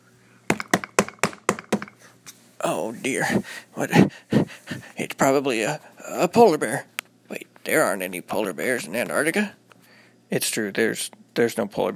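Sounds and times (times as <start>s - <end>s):
knocking on a door: 0.5s - 2.0s
speech: 2.6s - 9.6s, 10.3s - 11.9s.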